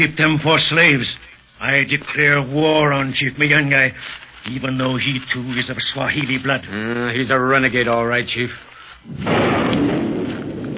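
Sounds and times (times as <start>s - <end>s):
speech: 0.0s - 9.6s
thunder of an approaching storm: 9.1s - 10.7s.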